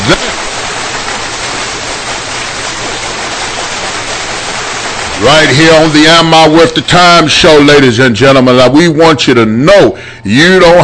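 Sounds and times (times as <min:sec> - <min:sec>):
crowd applause: 0:00.0 - 0:06.9
speech: 0:05.2 - 0:10.8.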